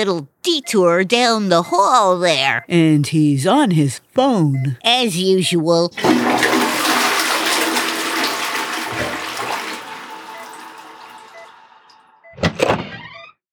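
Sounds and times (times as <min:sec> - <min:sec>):
speech: 0:00.0 - 0:06.5
toilet flushing: 0:06.0 - 0:12.3.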